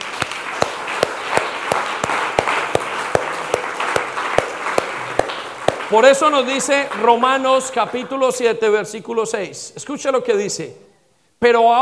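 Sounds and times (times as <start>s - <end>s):
audience applause: 0.0s - 7.1s
speech: 5.9s - 11.8s.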